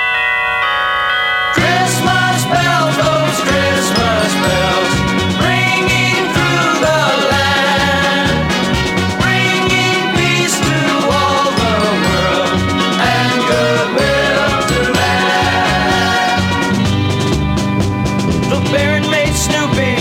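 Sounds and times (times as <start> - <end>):
village bells ringing: 0.0 - 7.4, 9.9 - 16.4
instrumental music: 1.6 - 19.9.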